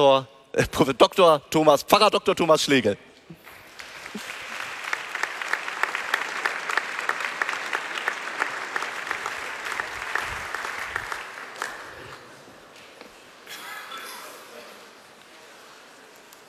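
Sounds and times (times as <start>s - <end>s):
speech: 0.0s - 3.1s
audience applause welcoming a pastor at a church event in Augsburg: 3.4s - 12.6s.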